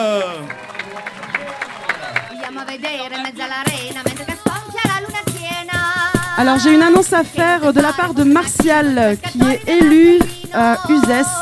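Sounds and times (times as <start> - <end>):
audience applause: 0.0 - 3.1
speech: 2.7 - 4.3, 6.4 - 11.4.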